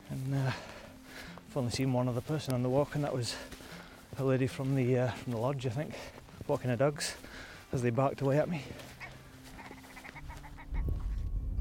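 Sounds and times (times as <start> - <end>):
speech: 0.1 - 0.8, 1.5 - 8.9
grouse calling: 9.0 - 11.3.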